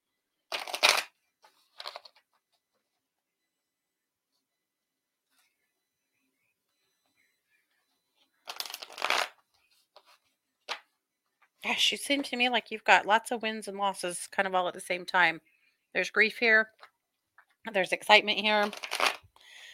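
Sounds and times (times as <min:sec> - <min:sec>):
card reader shuffling a deck: 0:00.5 - 0:01.1, 0:08.5 - 0:09.3, 0:18.7 - 0:19.2
speech: 0:11.6 - 0:16.8, 0:17.6 - 0:18.9.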